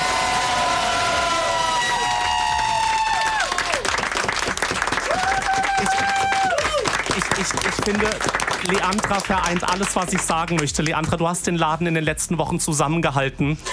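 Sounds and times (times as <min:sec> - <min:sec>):
crowd applauding: 0:00.0 - 0:11.3
high-pitched whistles and whoops: 0:00.1 - 0:03.8, 0:05.1 - 0:07.0
speech: 0:07.9 - 0:13.7.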